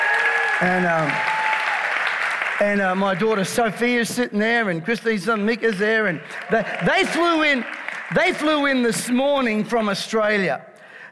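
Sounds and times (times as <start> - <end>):
audience applause: 0.0 - 3.9, 5.6 - 9.4
speech: 0.6 - 1.3, 2.6 - 11.1.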